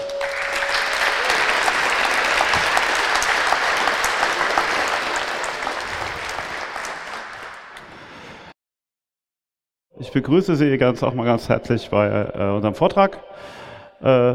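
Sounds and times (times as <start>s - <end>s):
audience applause: 0.0s - 8.5s
speech: 10.1s - 14.3s.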